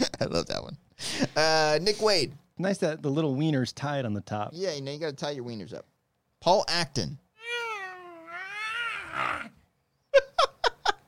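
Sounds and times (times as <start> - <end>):
speech: 0.2 - 7.2
person imitating a cat: 7.4 - 9.6.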